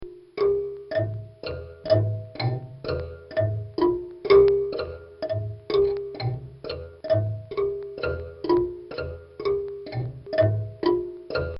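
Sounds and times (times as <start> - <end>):
Cuban marimbula: 0.0 - 11.5.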